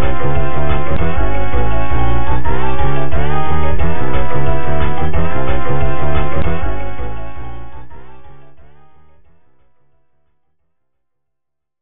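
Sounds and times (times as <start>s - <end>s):
intense background music: 0.0s - 9.2s.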